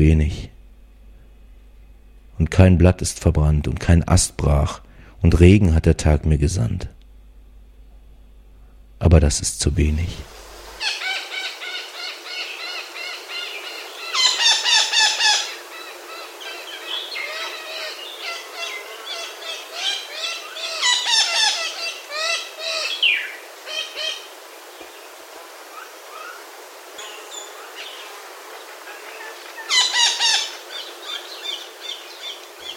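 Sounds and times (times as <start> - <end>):
speech: 0.0 - 0.5, 2.4 - 7.0, 9.0 - 11.0
steady hiss: 0.0 - 32.7
echo parakeet calls: 10.8 - 24.3, 25.7 - 32.7.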